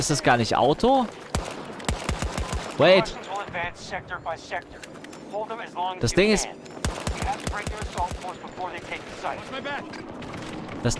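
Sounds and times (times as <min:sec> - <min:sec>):
speech: 0:00.0 - 0:01.6, 0:02.8 - 0:10.9
marksman rifle gunfire in a video game: 0:01.3 - 0:03.2, 0:06.8 - 0:09.4.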